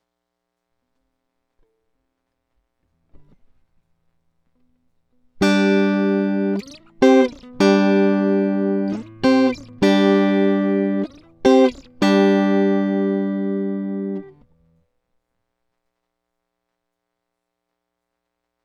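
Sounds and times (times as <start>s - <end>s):
electric guitar: 5.4s - 14.4s.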